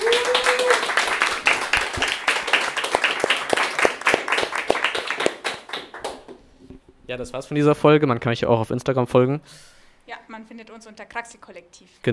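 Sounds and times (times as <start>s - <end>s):
audience applause: 0.0s - 6.4s
speech: 7.1s - 12.1s.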